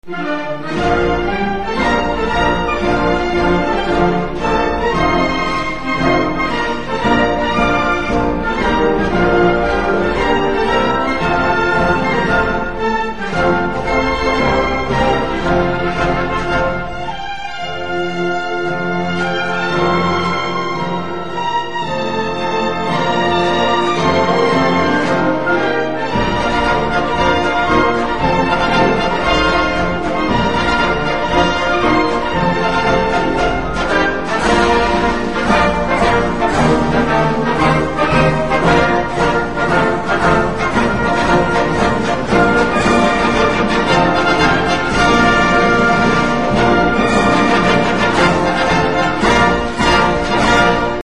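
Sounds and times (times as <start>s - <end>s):
national anthem music: 0.0s - 51.0s.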